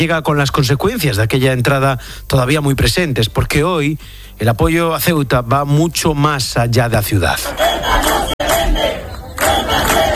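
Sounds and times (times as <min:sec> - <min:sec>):
speech: 0:00.0 - 0:10.1
large protest crowd chanting a slogan in unison: 0:07.3 - 0:10.1.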